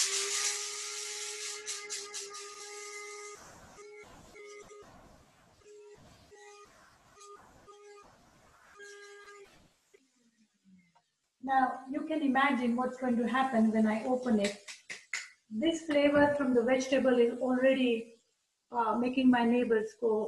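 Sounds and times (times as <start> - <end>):
electric coffee grinder grinding whole spices: 0.0 - 3.4
speech: 11.5 - 14.6, 15.6 - 18.1, 18.7 - 20.2.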